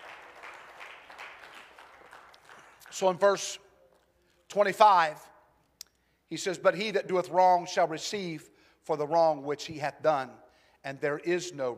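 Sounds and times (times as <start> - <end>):
audience clapping: 0.0 - 4.1
speech: 3.0 - 3.6, 4.5 - 5.3, 6.3 - 11.7.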